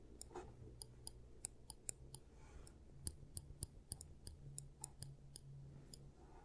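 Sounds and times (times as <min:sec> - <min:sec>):
tools clicking and snipping for giant teeth treatment: 0:00.2 - 0:06.1.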